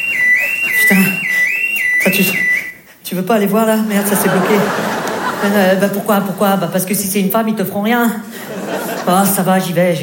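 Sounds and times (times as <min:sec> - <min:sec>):
electronic alarm whooping: 0:00.0 - 0:02.8
speech: 0:00.9 - 0:01.2, 0:02.1 - 0:02.5, 0:03.1 - 0:10.0
laughter: 0:03.9 - 0:06.7, 0:08.3 - 0:09.4.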